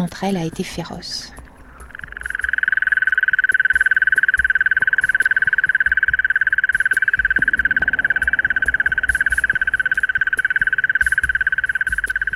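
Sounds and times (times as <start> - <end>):
faint low rumble: 0.0 - 12.3
mole cricket singing a churring trill: 0.0 - 12.3
speech: 0.1 - 1.4.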